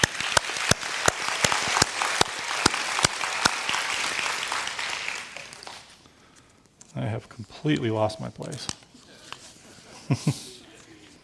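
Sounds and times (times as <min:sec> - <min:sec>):
church congregation applauding the service team: 0:00.0 - 0:06.0
speech: 0:07.0 - 0:08.9, 0:10.1 - 0:10.5.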